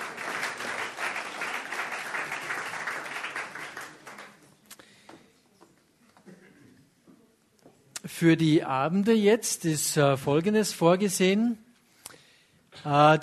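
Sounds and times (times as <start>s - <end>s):
audience applause: 0.0s - 4.4s
speech: 8.1s - 11.6s, 12.8s - 13.2s.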